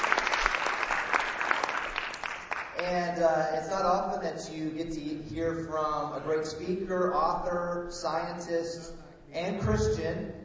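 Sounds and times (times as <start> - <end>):
audience applause: 0.0 - 2.7
speech: 2.8 - 10.3.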